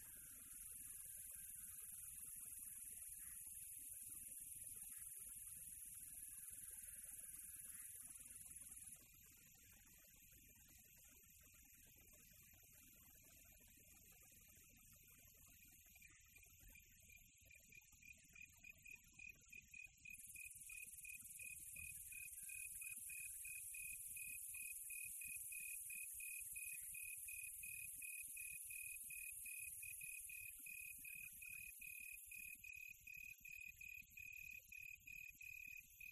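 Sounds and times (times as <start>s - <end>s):
cricket chirping on a quiet tropical night: 0.0s - 36.0s.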